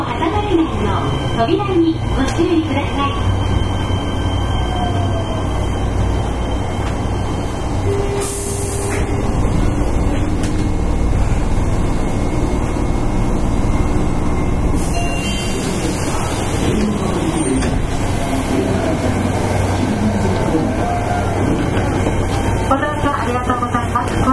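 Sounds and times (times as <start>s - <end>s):
Fukuoka City Subway 1000 series train running: 0.0s - 24.3s.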